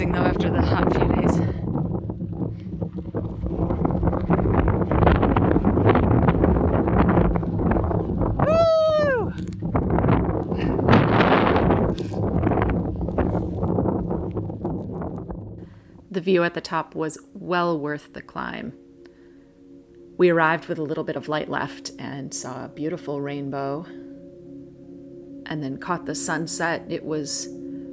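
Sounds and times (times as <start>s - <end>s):
speech: 0.0s - 0.9s, 16.2s - 18.8s, 20.2s - 24.0s, 25.5s - 27.6s
strong wind on a mountaintop: 0.0s - 16.2s.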